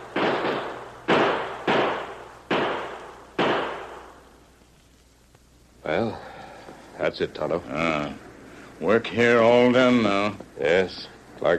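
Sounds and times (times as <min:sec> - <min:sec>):
gunshots in a radio drama shootout: 0:00.0 - 0:04.2
speech: 0:05.9 - 0:06.2, 0:07.0 - 0:08.2, 0:08.8 - 0:11.5.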